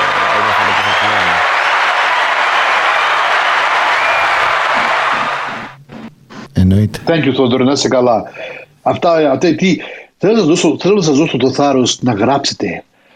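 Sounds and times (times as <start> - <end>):
audience applause: 0.0 - 5.8
speech: 6.7 - 12.9.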